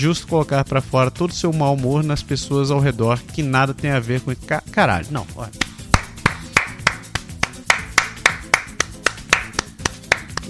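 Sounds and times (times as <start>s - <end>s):
speech: 0.0s - 5.7s
hand clapping: 5.5s - 10.4s.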